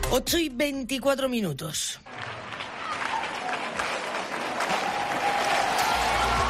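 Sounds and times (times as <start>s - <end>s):
speech: 0.2s - 2.1s
crowd clapping: 2.0s - 6.4s
crowd shouting: 2.6s - 6.4s.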